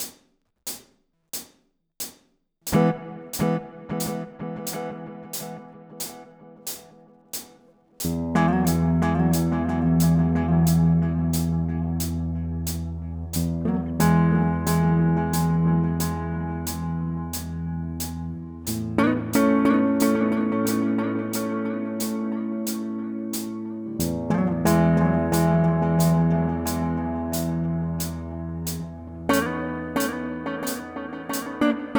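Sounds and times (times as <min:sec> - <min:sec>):
rhythms with multitap delay and room effect: 0:02.7 - 0:31.9.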